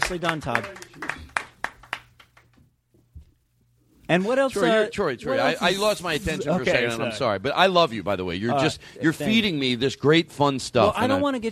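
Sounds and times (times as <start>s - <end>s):
audience applause: 0.0s - 2.6s
speech: 0.1s - 1.2s, 4.1s - 11.5s.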